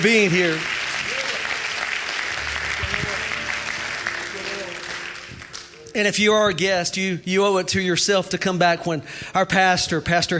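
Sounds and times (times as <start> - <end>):
speech: 0.0 - 0.8, 6.0 - 10.3
audience clapping hands: 0.0 - 6.4.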